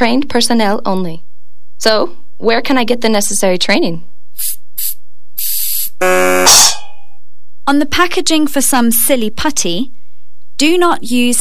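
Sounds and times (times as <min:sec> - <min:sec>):
speech: 0:00.0 - 0:04.9, 0:07.7 - 0:10.0, 0:10.6 - 0:11.4
aerosol air freshener can spraying: 0:04.4 - 0:05.9
steady electronic buzzing tone: 0:04.8 - 0:07.2.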